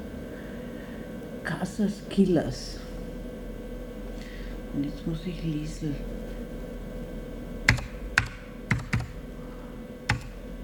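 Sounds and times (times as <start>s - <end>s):
low steady hum: 0.0s - 10.6s
speech: 1.4s - 2.8s, 4.8s - 6.4s
computer keyboard keys clacking: 7.7s - 9.2s, 10.1s - 10.4s.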